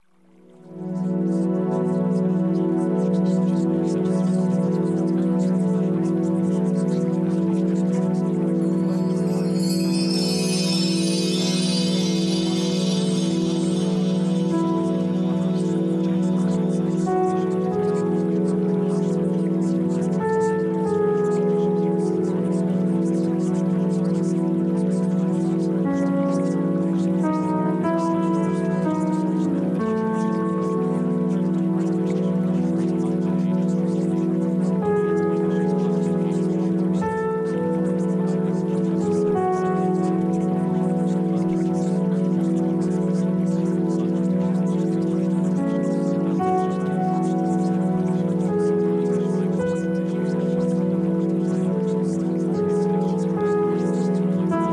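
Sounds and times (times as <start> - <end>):
music: 0.0 - 54.7.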